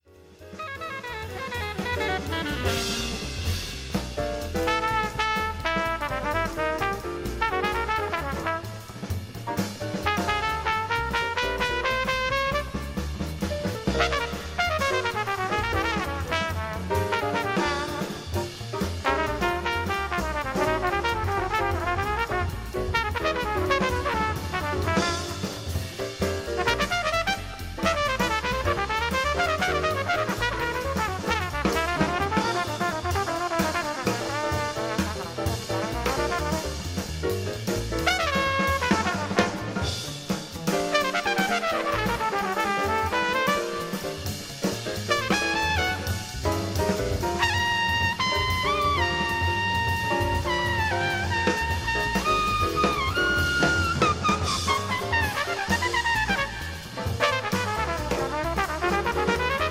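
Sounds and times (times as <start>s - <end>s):
solo jazz trumpet: 0.2s - 59.7s.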